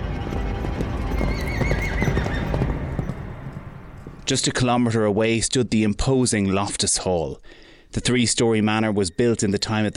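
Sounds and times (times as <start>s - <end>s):
horse hooves on stone: 0.2s - 4.6s
horse neighing: 0.9s - 3.2s
speech: 4.3s - 9.9s.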